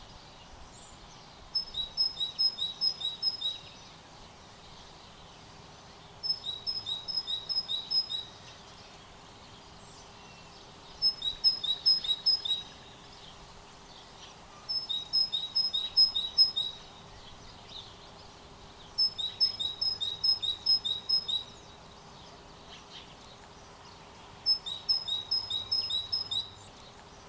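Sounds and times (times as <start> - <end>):
great tit double notes: 1.6 - 3.8, 6.2 - 8.5, 11.0 - 13.0, 14.3 - 17.6, 19.0 - 21.6, 24.5 - 26.7.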